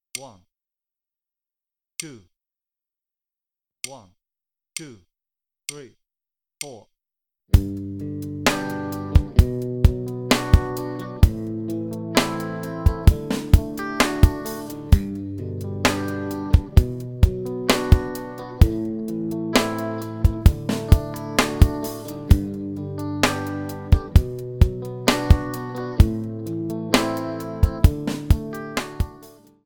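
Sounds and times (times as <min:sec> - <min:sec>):
bass: 0:07.6 - 0:29.0.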